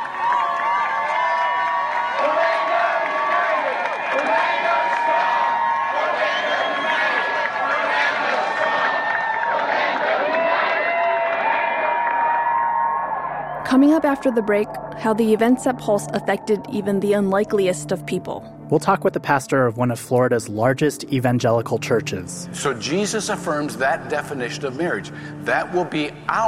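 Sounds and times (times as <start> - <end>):
crowd cheering: 0.0 - 16.9
speech: 14.0 - 26.4.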